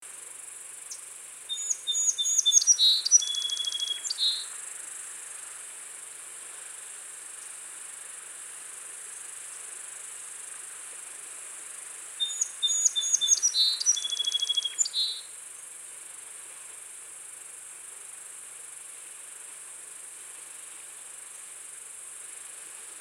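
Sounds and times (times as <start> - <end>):
song sparrow (Melospiza melodia) singing: 1.5 - 4.4, 12.2 - 15.2.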